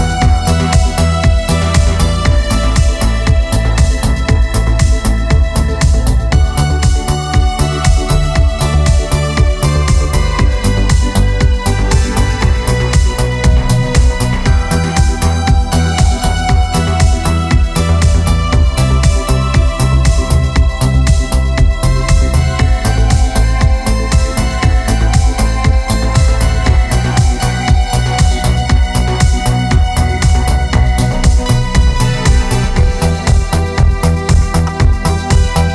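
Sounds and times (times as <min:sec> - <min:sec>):
keyboard modern beat: 0:00.0 - 0:35.7.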